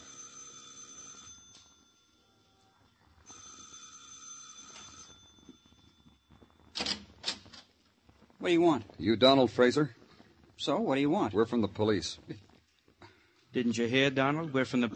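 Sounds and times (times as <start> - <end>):
doorbell ringing: 0.0 - 2.5, 3.3 - 6.6
speech: 8.4 - 10.0, 10.6 - 12.5, 13.5 - 14.9.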